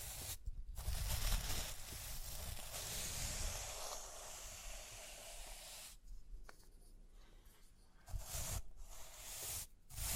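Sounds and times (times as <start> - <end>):
brushing and scratching over rhinestones: 0.0 - 6.0, 8.0 - 10.1.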